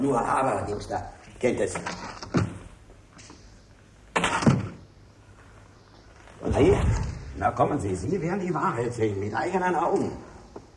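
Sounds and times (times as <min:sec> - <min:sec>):
speech: 0:00.0 - 0:02.4, 0:06.6 - 0:10.3
door opening: 0:01.7 - 0:03.3, 0:04.1 - 0:04.8, 0:06.0 - 0:07.7.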